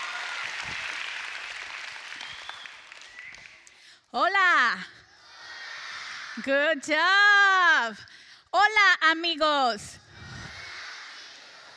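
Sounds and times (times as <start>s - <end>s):
audience applause: 0.0s - 3.7s
speech: 4.1s - 5.0s, 6.4s - 10.0s.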